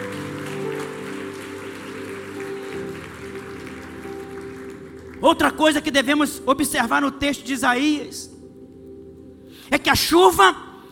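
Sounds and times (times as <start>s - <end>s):
crowd clapping: 0.0s - 6.2s
speech: 5.2s - 8.3s, 9.7s - 10.6s.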